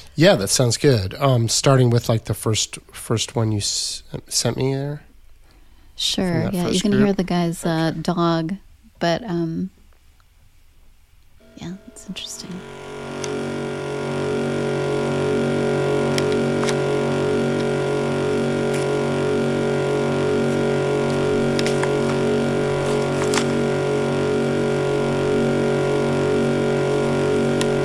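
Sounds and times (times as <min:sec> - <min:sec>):
speech: 0:00.2 - 0:05.1, 0:06.0 - 0:09.8, 0:11.6 - 0:12.9
buzzing vibrating sky trumpet sound: 0:11.4 - 0:27.8.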